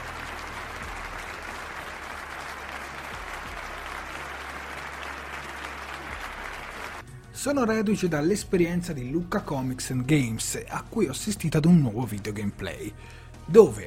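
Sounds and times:
applause: 0.0 - 7.0
speech: 7.4 - 13.8.

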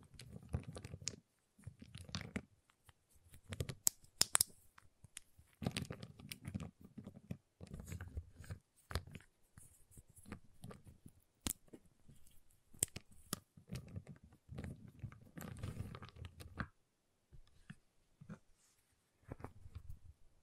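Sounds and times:
giant chocolate bar tapped, cut and snapped: 0.0 - 9.2, 10.6 - 11.8, 12.7 - 16.8.

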